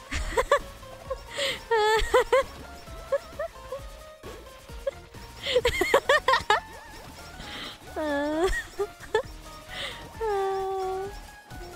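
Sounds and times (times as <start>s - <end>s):
person laughing: 0.0s - 3.8s, 4.8s - 6.7s, 8.0s - 9.2s.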